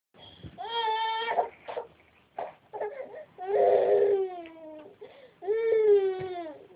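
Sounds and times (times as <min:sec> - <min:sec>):
hungry baby girl crying: 0:00.6 - 0:01.9, 0:02.7 - 0:06.7.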